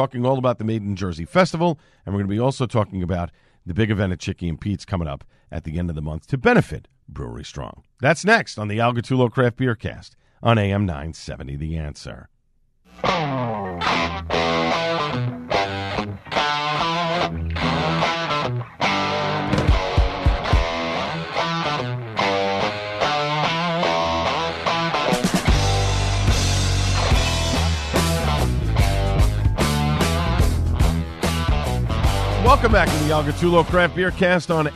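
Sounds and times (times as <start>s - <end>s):
speech: 0.0s - 12.3s, 12.9s - 14.4s, 32.6s - 34.7s
guitar playing: 12.9s - 34.7s.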